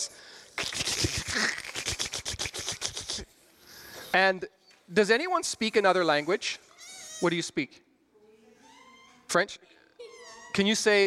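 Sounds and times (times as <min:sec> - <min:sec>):
group imitating crackling fire: 0:00.6 - 0:03.2
speech: 0:04.1 - 0:06.6, 0:07.2 - 0:07.8, 0:09.3 - 0:09.8, 0:10.6 - 0:11.0.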